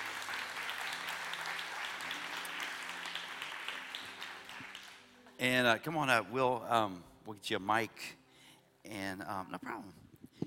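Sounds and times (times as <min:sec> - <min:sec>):
audience applause at Promised Land welcoming a guest speaker: 0:00.0 - 0:05.1
speech: 0:05.4 - 0:08.2, 0:08.9 - 0:10.0.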